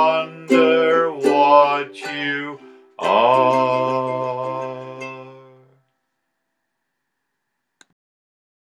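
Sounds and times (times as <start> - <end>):
nursery rhyme melody: 0.0 - 5.8.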